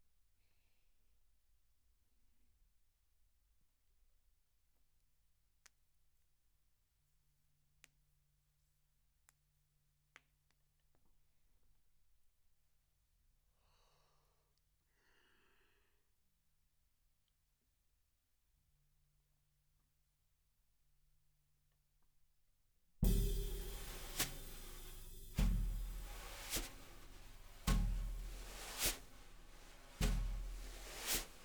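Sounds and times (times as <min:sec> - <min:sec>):
snare drum top hit: 0:23.0 - 0:31.4.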